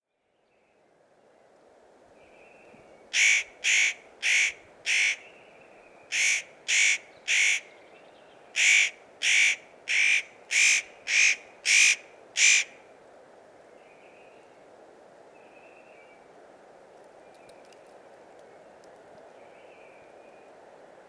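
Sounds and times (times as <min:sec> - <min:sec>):
spotted nutcracker rasping calls: 0:03.2 - 0:05.3, 0:06.1 - 0:07.7, 0:08.6 - 0:12.8.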